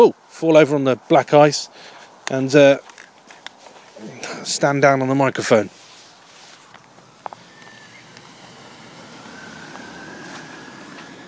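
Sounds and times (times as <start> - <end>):
speech: 0.0 - 2.9, 4.0 - 5.8
two cars passing on a country lane: 5.8 - 11.2.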